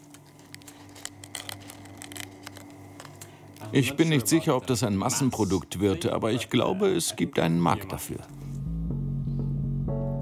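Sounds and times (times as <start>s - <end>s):
crispy jellyfish chips crunching: 0.0s - 4.4s
steady low hum: 0.0s - 10.1s
speech: 3.7s - 8.4s.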